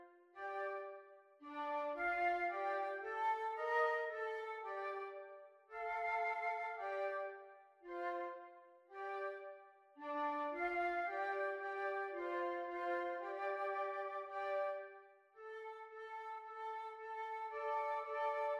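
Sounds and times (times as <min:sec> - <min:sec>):
flute quartet playing groovy music: 0:00.4 - 0:07.3, 0:09.0 - 0:14.9, 0:15.6 - 0:18.5.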